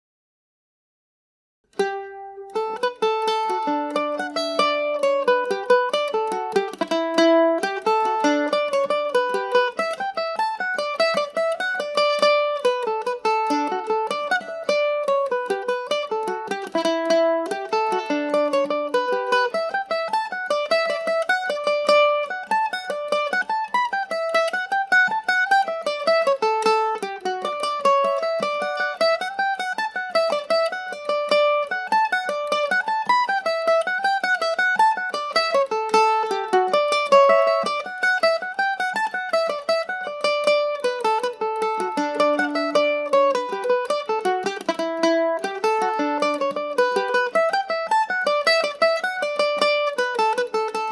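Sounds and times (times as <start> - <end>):
Irish mandolin playing in D major: 1.7 - 50.8.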